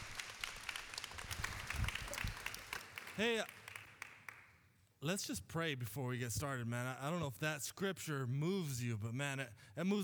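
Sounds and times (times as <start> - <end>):
audience applause: 0.0 - 4.5
speech: 3.2 - 3.6, 5.0 - 10.0.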